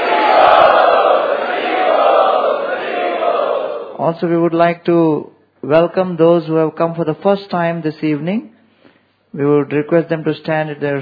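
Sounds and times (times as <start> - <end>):
audience chanting to welcome guests at an evening gathering: 0.0 - 4.0
speech: 4.0 - 8.5, 9.3 - 11.0.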